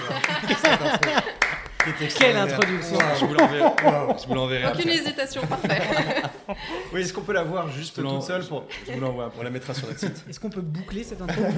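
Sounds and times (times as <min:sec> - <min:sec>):
audience clapping: 0:00.0 - 0:04.6
laughter: 0:00.0 - 0:07.2, 0:08.7 - 0:10.3, 0:11.2 - 0:11.5
speech: 0:00.8 - 0:01.2, 0:01.8 - 0:11.5.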